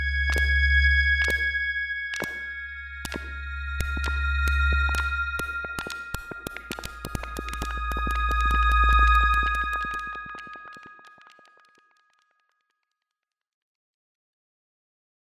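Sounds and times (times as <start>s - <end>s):
bright and dark synth pad: 0.0s - 10.8s.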